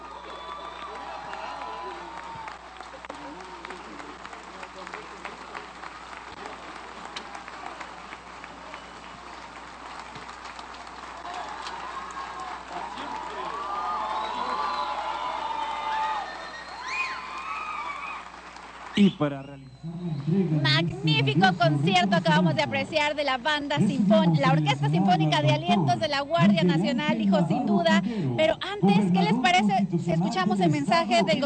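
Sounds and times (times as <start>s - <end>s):
audience cheers and whoops: 0.0s - 3.1s, 11.2s - 18.4s
large audience applause after orchestra concert: 0.0s - 22.8s
high whistles: 14.0s - 15.1s, 16.1s - 18.2s, 18.9s - 20.4s
speech: 19.0s - 31.4s.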